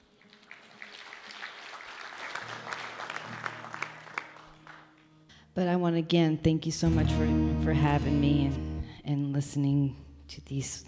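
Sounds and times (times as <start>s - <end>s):
audience applause: 0.0s - 5.0s
speech: 5.6s - 10.8s.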